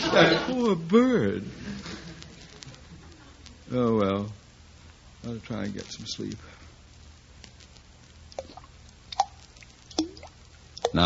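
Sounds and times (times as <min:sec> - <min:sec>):
faint hum: 0:00.0 - 0:11.0
speech: 0:00.2 - 0:02.0, 0:03.7 - 0:04.4, 0:05.2 - 0:06.6
water dripping: 0:08.3 - 0:11.0.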